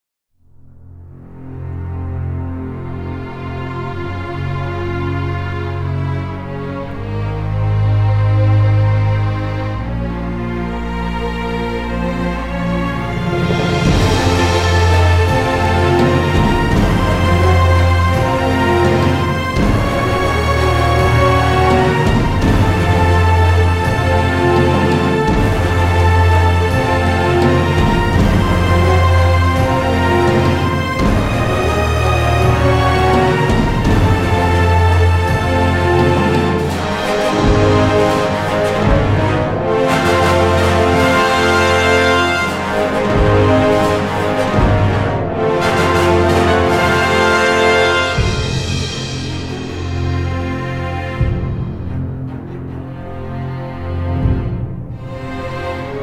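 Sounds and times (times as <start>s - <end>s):
Arabic music: 0.3s - 56.0s.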